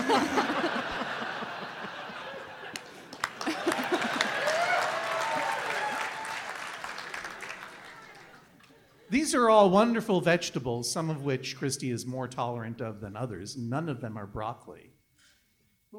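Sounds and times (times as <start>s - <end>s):
audience laughter: 0.0s - 5.7s, 6.8s - 9.1s
audience applause: 0.0s - 8.6s
cheers and whistles: 4.0s - 8.5s
speech: 9.3s - 15.0s.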